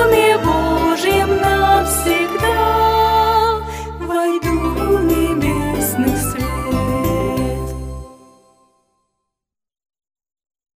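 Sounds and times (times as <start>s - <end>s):
voice: 0.0s - 7.7s.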